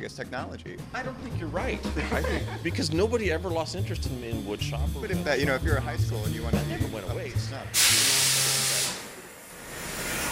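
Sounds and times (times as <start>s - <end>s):
speech: 0.0s - 8.2s
laughter: 1.7s - 3.5s
high-pressure water spraying from a water jet cutter: 7.7s - 10.3s.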